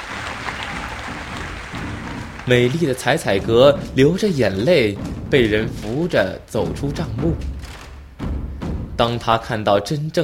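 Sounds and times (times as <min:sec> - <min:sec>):
crowd cheering at the end of a horse race: 0:00.0 - 0:04.2
speech: 0:02.4 - 0:07.5, 0:09.0 - 0:10.2.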